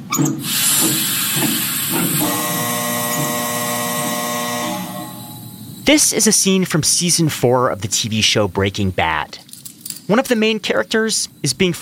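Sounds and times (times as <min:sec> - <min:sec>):
CO2 gas hissing from a line in a meth lab: 0:00.2 - 0:06.4
speech: 0:05.9 - 0:09.5, 0:10.1 - 0:11.7.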